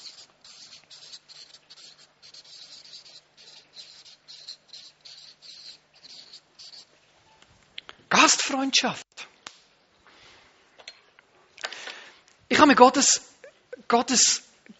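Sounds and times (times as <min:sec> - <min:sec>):
pen scratching on paper writing a word: 0:00.0 - 0:06.9
speech: 0:08.3 - 0:09.0, 0:12.6 - 0:13.3, 0:13.9 - 0:14.7.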